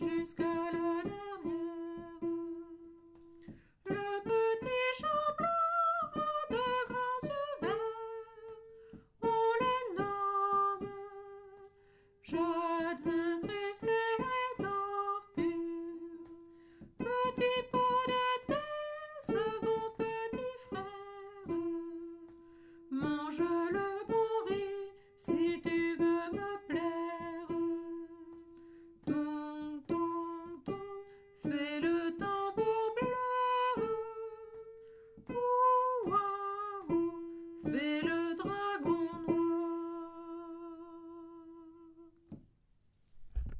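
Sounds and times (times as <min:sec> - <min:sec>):
soprano singing a Chinese lullaby: 0:00.0 - 0:03.1, 0:03.9 - 0:22.3, 0:22.9 - 0:42.2.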